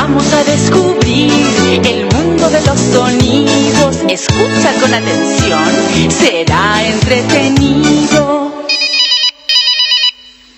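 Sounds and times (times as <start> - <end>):
speech: 0.1 - 3.2, 4.0 - 8.6
telephone ringing: 8.7 - 10.5.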